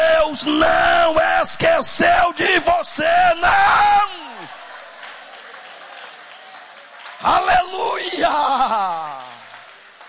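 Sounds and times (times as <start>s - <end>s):
speech: 0.4s - 4.6s, 7.2s - 9.2s
audience applauding: 4.0s - 10.0s.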